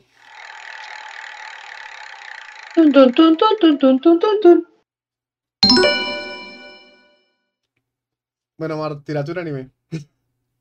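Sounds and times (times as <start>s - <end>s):
roulette wheel spinning and clicking: 0.2s - 3.6s
speech: 2.8s - 4.7s, 8.6s - 10.1s.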